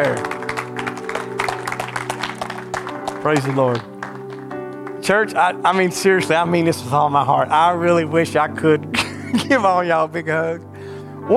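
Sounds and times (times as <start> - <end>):
audience clapping hands: 0.0 - 6.0
organ-like droning chord: 0.0 - 11.3
speech: 3.2 - 3.9, 5.1 - 10.7.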